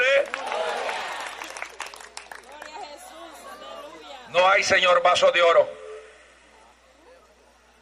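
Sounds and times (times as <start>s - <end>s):
crowd clapping and cheering: 0.0s - 3.0s
speech: 4.6s - 5.8s.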